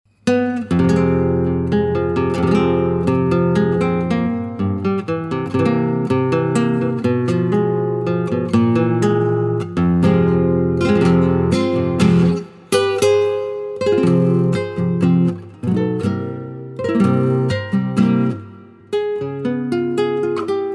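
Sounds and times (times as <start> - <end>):
FM synth guitar: 0.2 - 20.7.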